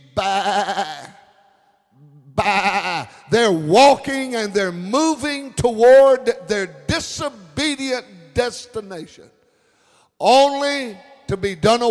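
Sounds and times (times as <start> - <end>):
sheep bleating: 2.4 - 3.2
speech: 3.3 - 9.4, 10.2 - 11.8.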